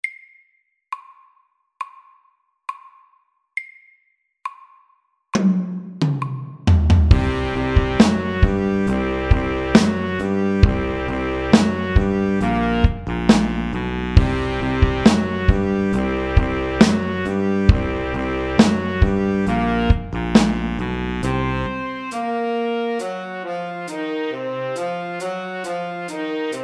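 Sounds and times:
slow funk music at 68 BPM: 6.7 - 26.6.

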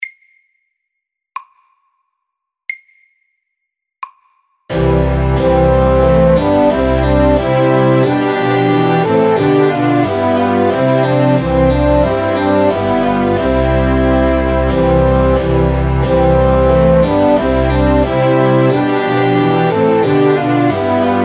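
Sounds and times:
trumpet tune: 4.7 - 21.2.

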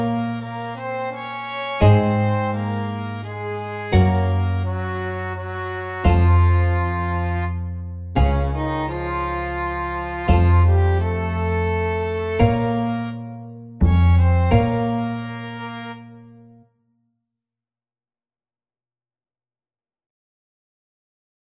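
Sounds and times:
Norwegian folk tune: 0.0 - 16.6.

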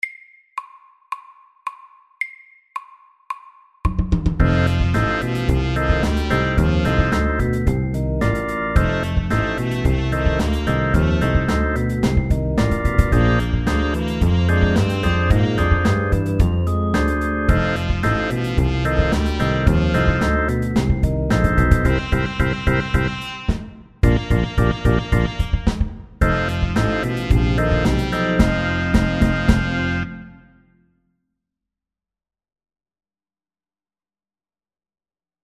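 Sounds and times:
medium-tempo 12-bar blues: 4.4 - 23.3, 24.0 - 25.6, 26.2 - 30.4.

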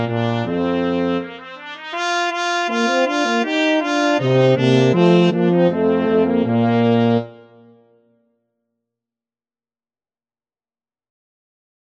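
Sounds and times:
fanfare: 0.0 - 7.8.

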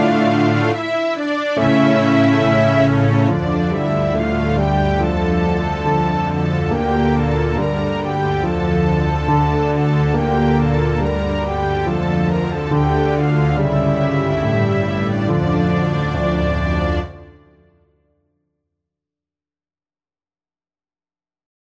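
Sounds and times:
slow old French melody: 0.0 - 17.3.

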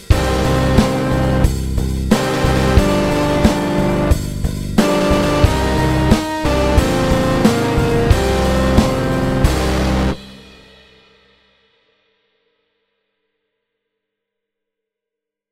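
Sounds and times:
slow metal triplet riff: 0.0 - 10.7.

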